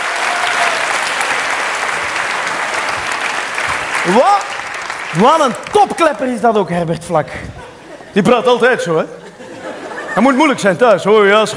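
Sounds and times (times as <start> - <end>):
crowd applauding: 0.0 - 6.5
speech: 4.0 - 4.4, 5.1 - 7.6, 8.2 - 9.2, 10.2 - 11.5
laughter: 7.3 - 11.4.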